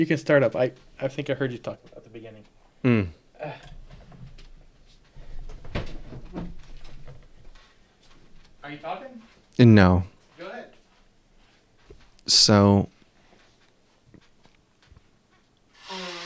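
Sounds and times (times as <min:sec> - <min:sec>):
speech: 0:00.0 - 0:03.7, 0:08.7 - 0:10.1, 0:12.3 - 0:12.9
person blowing nose: 0:15.8 - 0:16.2.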